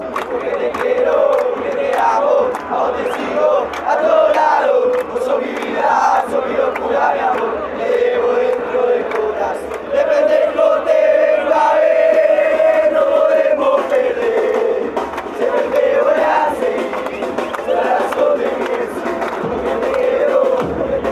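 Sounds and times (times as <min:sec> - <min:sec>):
football fans chanting: 0:00.0 - 0:21.1.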